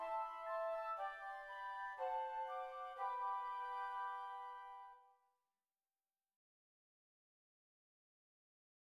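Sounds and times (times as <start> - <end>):
flutes: 0.0 - 5.1.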